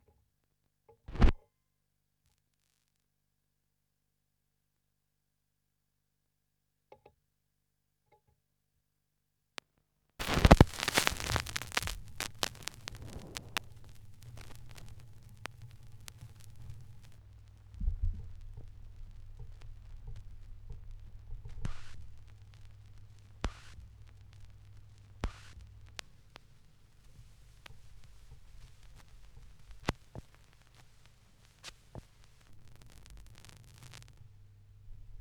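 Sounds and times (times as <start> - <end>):
vinyl record crackle: 1.1 - 1.3, 10.2 - 35.2.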